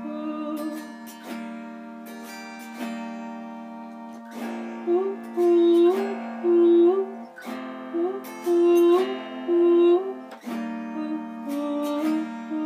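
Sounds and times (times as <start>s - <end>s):
person singing an original song: 0.0s - 1.2s, 4.4s - 12.6s
autoharp: 0.0s - 12.6s.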